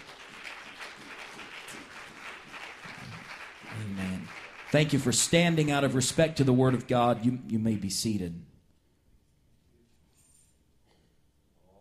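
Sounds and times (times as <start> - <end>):
audience clapping hands: 0.0 - 7.2
speech: 4.7 - 8.5.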